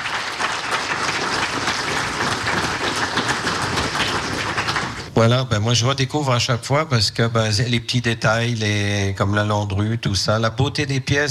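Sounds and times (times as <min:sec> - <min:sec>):
audience applause: 0:00.0 - 0:05.1
speech: 0:05.2 - 0:11.3.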